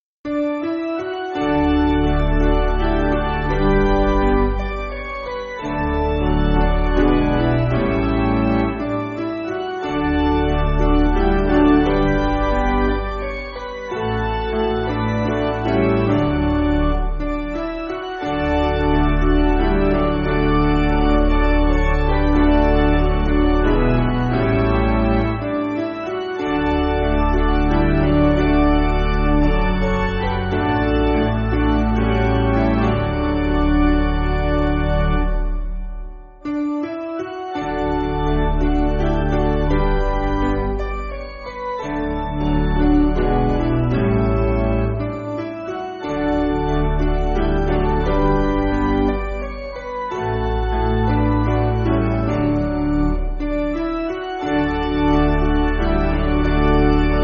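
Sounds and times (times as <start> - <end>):
piano backing music for churches: 0.3 - 57.2.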